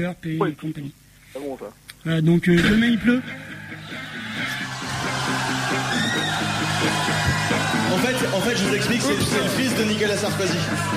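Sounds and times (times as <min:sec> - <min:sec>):
speech: 0:00.0 - 0:04.0, 0:07.9 - 0:10.9
live concert recording excerpt: 0:03.3 - 0:10.9
concert crowd: 0:03.4 - 0:10.9.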